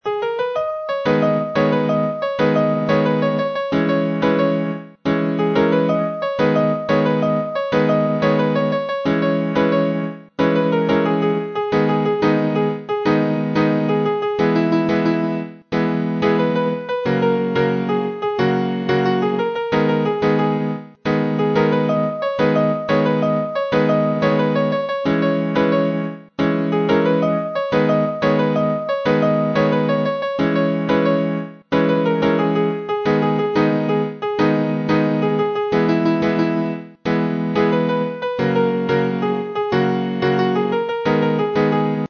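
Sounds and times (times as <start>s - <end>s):
piano: 0.0s - 42.0s.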